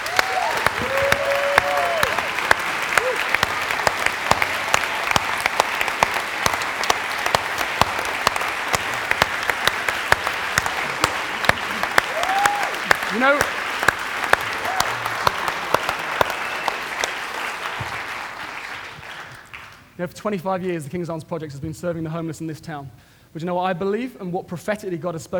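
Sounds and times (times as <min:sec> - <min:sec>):
audience applause: 0:00.0 - 0:19.9
speech: 0:13.2 - 0:13.5, 0:20.0 - 0:25.3.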